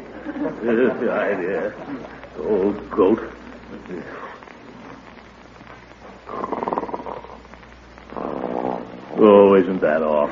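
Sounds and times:
laughter: 0:00.0 - 0:02.6
speech: 0:00.3 - 0:04.4, 0:09.2 - 0:10.3
soft breathy noise: 0:03.4 - 0:09.4
loud rasping snores: 0:06.3 - 0:07.4, 0:08.1 - 0:09.4.

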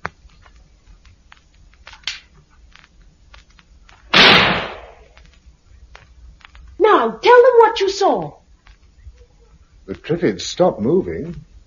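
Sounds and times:
gunshot fired out of a window into the air: 0:04.1 - 0:05.1
speech: 0:07.0 - 0:08.4, 0:09.9 - 0:11.5.

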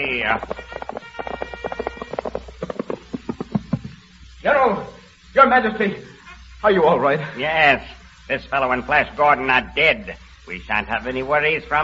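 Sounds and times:
speech: 0:00.0 - 0:00.8, 0:04.4 - 0:11.8
hoofbeats of soldiers riding up on horses: 0:00.0 - 0:04.1.

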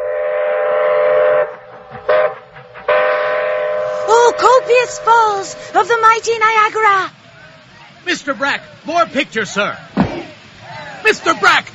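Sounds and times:
moving train whistle: 0:00.0 - 0:05.9
speech: 0:04.8 - 0:07.2, 0:08.0 - 0:10.2, 0:11.1 - 0:11.7.

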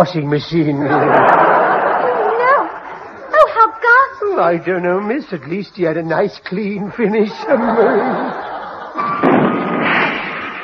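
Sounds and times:
speech: 0:00.0 - 0:01.4, 0:04.4 - 0:08.5
laughter: 0:00.6 - 0:03.6, 0:06.6 - 0:09.2
rocket exploding inside the shaft of a shooting stick: 0:09.0 - 0:10.6.

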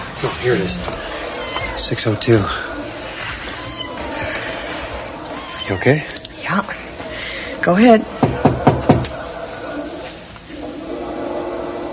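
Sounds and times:
dense steady noise: 0:00.0 - 0:11.9
speech: 0:00.2 - 0:01.1, 0:01.8 - 0:02.7, 0:05.7 - 0:06.8, 0:07.6 - 0:08.6
cat meowing: 0:00.6 - 0:02.0, 0:03.4 - 0:04.3, 0:05.2 - 0:06.5.

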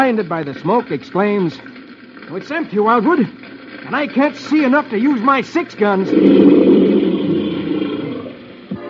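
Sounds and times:
speech: 0:00.0 - 0:06.9
tiger roaring: 0:06.0 - 0:08.6.

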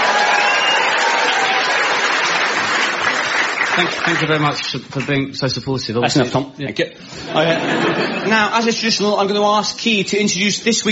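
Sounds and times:
applause: 0:00.0 - 0:05.2
speech: 0:03.8 - 0:10.8
laughter: 0:07.1 - 0:08.6.

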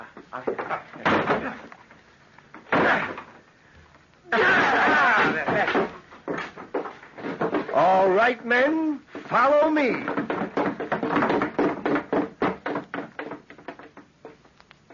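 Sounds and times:
locked door being broken down: 0:00.4 - 0:01.7, 0:02.5 - 0:03.5, 0:04.3 - 0:08.2, 0:09.2 - 0:14.4
speech: 0:08.2 - 0:10.2.

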